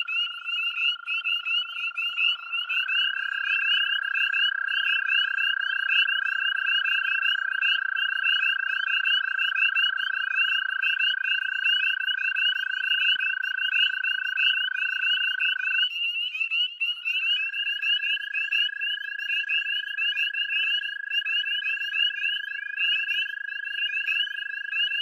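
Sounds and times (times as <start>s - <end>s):
American toads calling: 0.0s - 25.0s
spring peepers calling in chorus: 0.0s - 25.0s.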